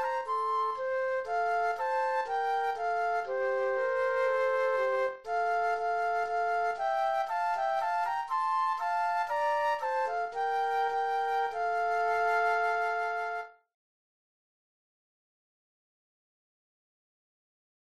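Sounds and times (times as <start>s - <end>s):
flute duet: 0.0s - 13.7s.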